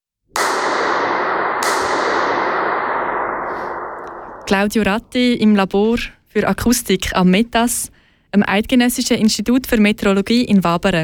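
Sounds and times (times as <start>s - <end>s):
snap: 0.3s - 5.2s
booming echo in a stairwell: 0.3s - 5.7s
sharp crack in a stairwell: 0.3s - 5.7s
speech: 4.5s - 11.0s.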